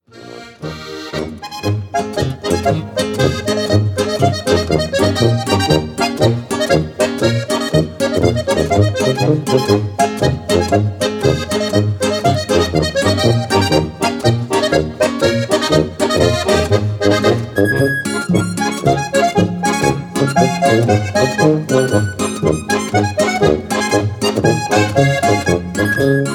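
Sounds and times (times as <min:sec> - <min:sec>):
polka tanzlmusi dance music: 0:00.0 - 0:26.3.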